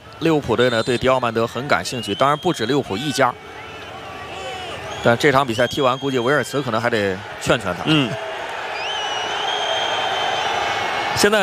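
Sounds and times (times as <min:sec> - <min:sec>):
German football fans booing in the stadium during a World Cup match: 0:00.0 - 0:11.4
speech: 0:00.2 - 0:03.6, 0:05.0 - 0:08.2, 0:11.2 - 0:11.4
shrill whistles from football fans: 0:00.6 - 0:01.3, 0:01.9 - 0:06.9, 0:08.7 - 0:11.0.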